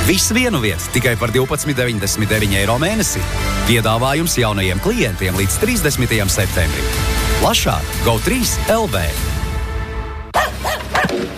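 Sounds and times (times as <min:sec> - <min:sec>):
speech: 0:00.1 - 0:09.3
dog barking: 0:10.4 - 0:11.2.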